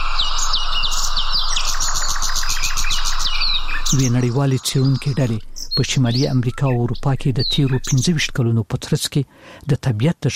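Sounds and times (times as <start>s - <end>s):
many birds chirping and tweeting: 0.0s - 8.5s
speech: 3.9s - 10.3s.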